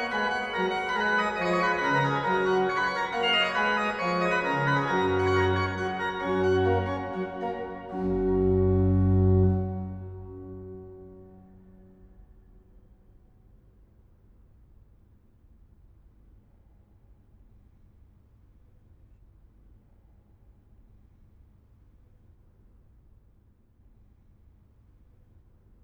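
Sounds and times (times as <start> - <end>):
keyboard piece in G major: 0.0 - 11.9.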